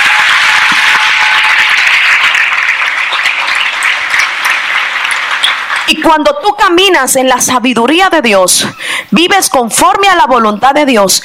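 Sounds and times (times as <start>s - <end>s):
crowd applause: 0.0s - 6.1s
speech: 6.0s - 11.2s.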